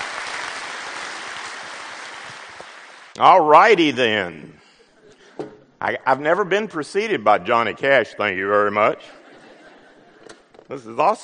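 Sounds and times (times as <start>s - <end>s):
church congregation applauding to welcome a guest speaker: 0.0s - 3.2s
speech: 3.2s - 4.6s, 5.8s - 9.2s, 10.7s - 11.2s
laughter: 9.0s - 10.6s.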